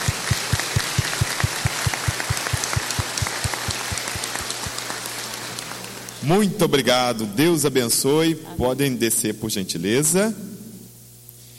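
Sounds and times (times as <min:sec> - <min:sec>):
low thumping pulse: 0:00.0 - 0:04.8
crowd applauding: 0:00.0 - 0:07.1
speech: 0:06.2 - 0:10.6.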